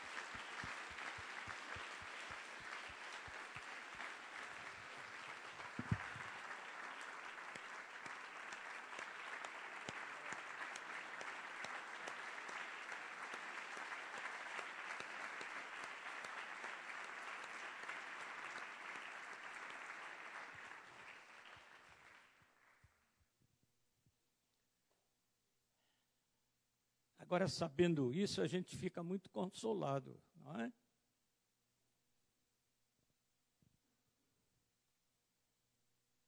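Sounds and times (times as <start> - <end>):
audience applauding: 0.0 - 23.2
speech: 27.3 - 30.8.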